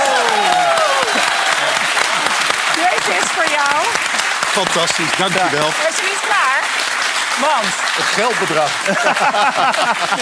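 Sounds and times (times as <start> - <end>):
faint cheers from the crowd: 0.0 - 2.4
audience applause: 0.0 - 10.2
speech: 4.6 - 6.4, 7.4 - 10.2
laughter: 8.1 - 10.2.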